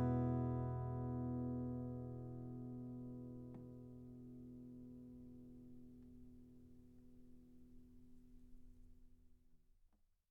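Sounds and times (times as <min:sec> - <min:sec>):
acoustic guitar: 0:00.0 - 0:06.4.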